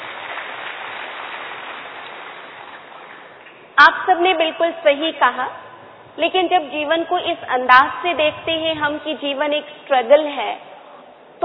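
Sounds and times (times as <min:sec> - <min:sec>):
audience clapping: 0:00.0 - 0:03.8
speech: 0:03.8 - 0:05.6, 0:06.2 - 0:10.7.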